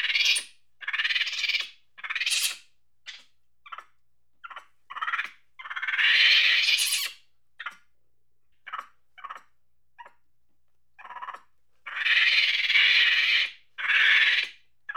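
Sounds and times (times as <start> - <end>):
monkey chattering angrily with screeches and squeaks: 0.0 - 7.8, 11.0 - 14.9.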